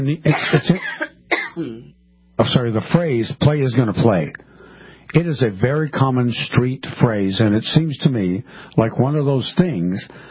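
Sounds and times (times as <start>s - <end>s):
speech: 0.0s - 1.0s, 2.4s - 4.5s, 5.1s - 10.2s
person coughing: 0.3s - 1.9s.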